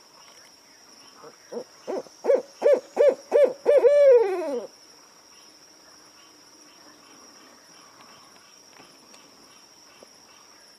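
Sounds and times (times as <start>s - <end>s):
steady high insect tone: 0.0s - 10.7s
owl hooting: 1.5s - 4.7s.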